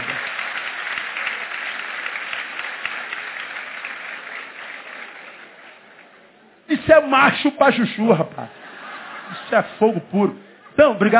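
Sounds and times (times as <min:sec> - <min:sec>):
audience applauding: 0:00.0 - 0:06.3
speech: 0:06.7 - 0:08.6, 0:09.4 - 0:11.1
laughter: 0:08.5 - 0:11.1.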